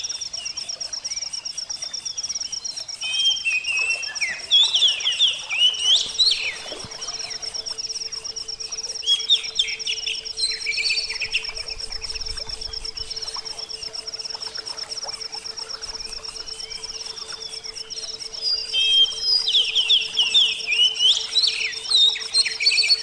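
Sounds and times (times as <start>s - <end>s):
oriental magpie-robin whistled song: 2.5s - 7.4s, 8.6s - 13.7s, 15.9s - 23.0s.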